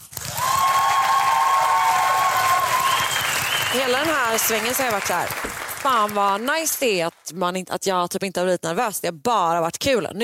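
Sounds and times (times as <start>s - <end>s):
audience applause: 0.1s - 7.2s
audience whistles and cheers: 0.2s - 5.0s
speech: 3.8s - 10.2s.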